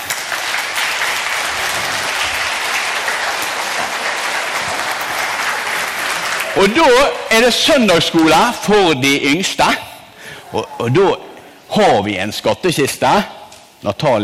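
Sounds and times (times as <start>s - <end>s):
audience applause: 0.0s - 7.1s
speech: 6.6s - 9.8s, 10.5s - 14.2s.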